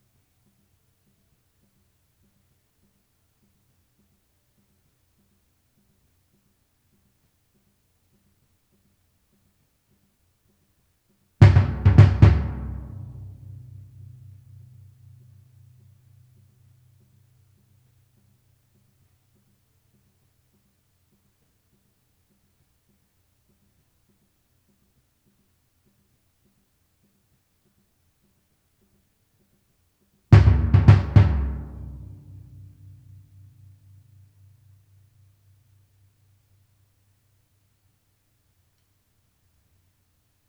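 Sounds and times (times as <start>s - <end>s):
timpani: 11.4s - 15.4s, 30.4s - 33.9s.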